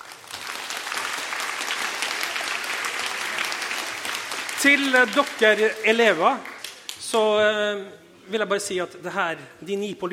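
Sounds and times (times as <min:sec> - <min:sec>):
audience clapping: 0:00.0 - 0:07.0
speech: 0:04.6 - 0:10.1.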